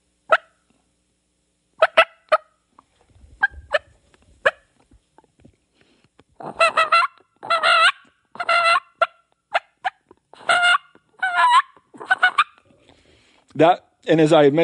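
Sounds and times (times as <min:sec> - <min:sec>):
reed turkey call purring and yelping: 0:00.0 - 0:00.6, 0:01.8 - 0:02.6, 0:03.3 - 0:04.8, 0:06.4 - 0:13.0
speech: 0:13.6 - 0:14.6.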